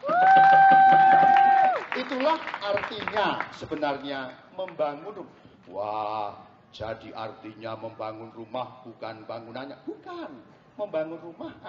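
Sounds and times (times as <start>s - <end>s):
audience applause: 0.0s - 4.0s
speech: 2.2s - 11.6s.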